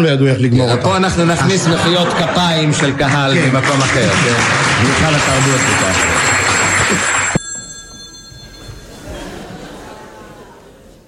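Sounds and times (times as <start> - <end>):
speech: 0.0 - 6.3, 6.9 - 7.1
laughter: 0.6 - 7.2, 8.9 - 10.9
telephone ringing: 4.8 - 9.5.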